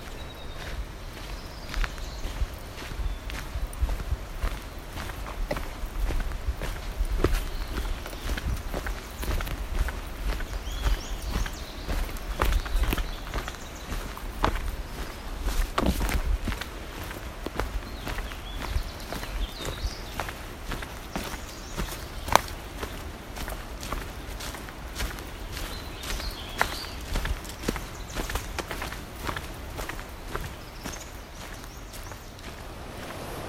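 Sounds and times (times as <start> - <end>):
footsteps walking on a trail: 0.0 - 33.4
low rumbling background: 32.2 - 33.4.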